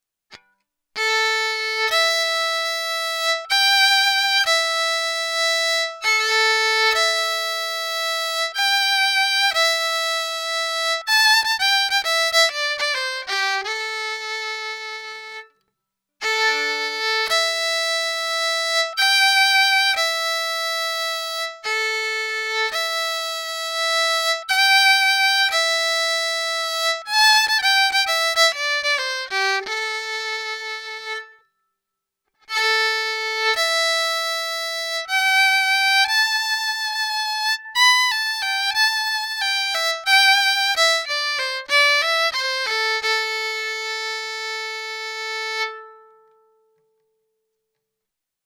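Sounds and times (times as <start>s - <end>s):
crude violin: 0.3s - 15.6s, 16.2s - 31.5s, 32.4s - 47.0s.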